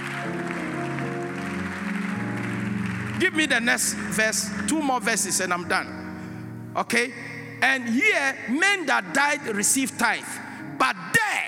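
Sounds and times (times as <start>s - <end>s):
audience clapping: 0.0s - 5.1s
speech: 3.2s - 6.0s, 6.8s - 11.1s.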